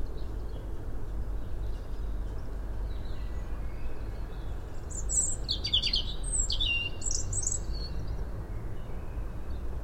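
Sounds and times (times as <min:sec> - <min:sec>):
low rumbling background noise: 0:00.0 - 0:09.8
European robin song: 0:02.9 - 0:08.2.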